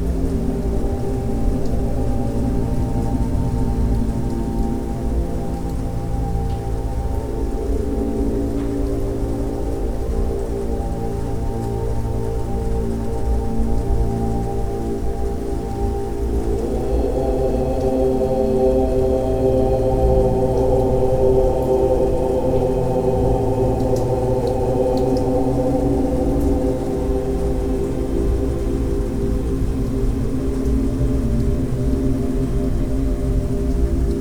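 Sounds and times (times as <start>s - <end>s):
rain: 0.0s - 34.2s
om mantra chanting for meditation: 16.4s - 29.0s.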